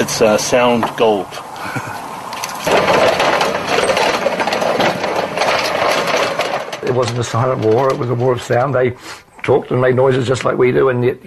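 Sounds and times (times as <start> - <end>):
speech: 0.1 - 1.9, 6.9 - 11.2
cannon breeches operating: 2.4 - 9.0.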